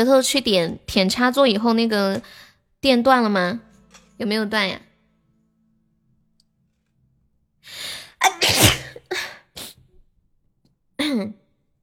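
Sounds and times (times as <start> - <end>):
speech: 0.0 - 4.9
person sneezing: 8.2 - 9.0.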